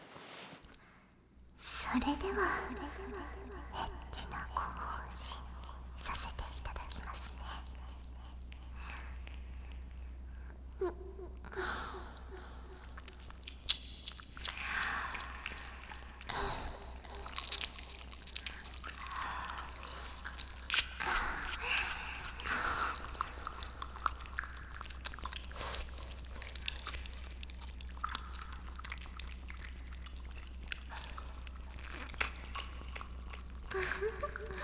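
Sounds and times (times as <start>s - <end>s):
speech: 1.9s - 5.5s
wet ear licking in ASMR: 2.0s - 34.6s
soft moist mouth smacks, clicks and slurps in ASMR: 12.8s - 34.6s.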